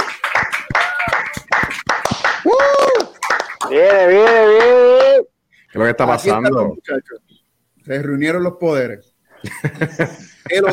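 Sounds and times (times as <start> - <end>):
audience applause: 0.0 - 5.2
speech: 3.7 - 5.0, 5.7 - 10.7
laughter: 9.4 - 10.7.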